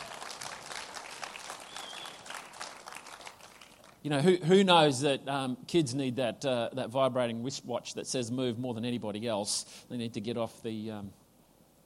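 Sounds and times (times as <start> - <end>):
audience applauding a youth group: 0.0 - 4.0
speech: 4.0 - 11.2.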